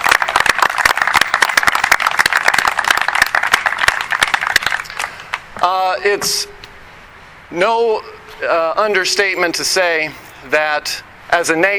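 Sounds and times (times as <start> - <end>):
audience applause for veterans: 0.0 - 5.3
speech: 5.6 - 6.6, 7.5 - 11.7.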